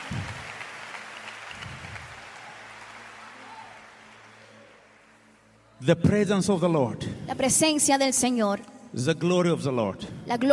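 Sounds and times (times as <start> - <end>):
audience clapping: 0.0 - 5.5
speech: 5.8 - 10.5.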